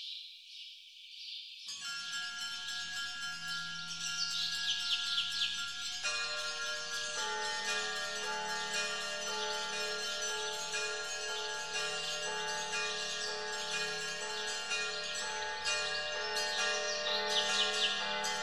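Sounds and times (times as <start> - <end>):
bell-tower bells ringing at the Near Caves: 1.7 - 18.4.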